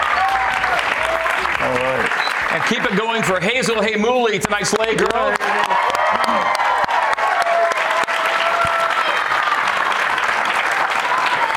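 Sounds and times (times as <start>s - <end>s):
scattered whoops and cheers: 0.0s - 1.5s, 5.3s - 10.1s, 10.8s - 11.5s
crowd applause: 0.0s - 11.5s
speech: 1.6s - 6.6s.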